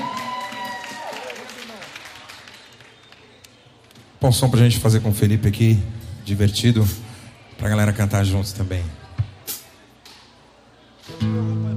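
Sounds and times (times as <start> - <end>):
applause: 0.0 - 4.0
speech: 4.2 - 7.0, 7.6 - 9.0.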